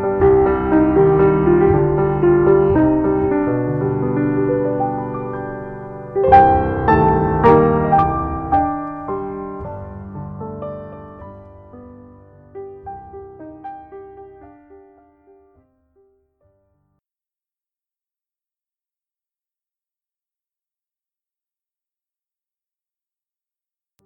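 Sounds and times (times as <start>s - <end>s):
ballet music: 0.0s - 15.5s.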